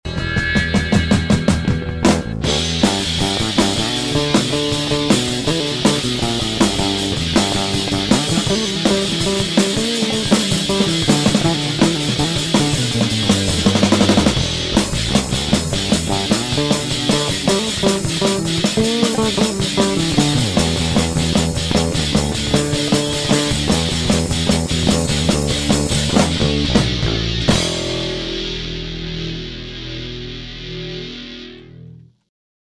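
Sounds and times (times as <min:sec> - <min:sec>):
bass solo: 0:00.0 - 0:32.2.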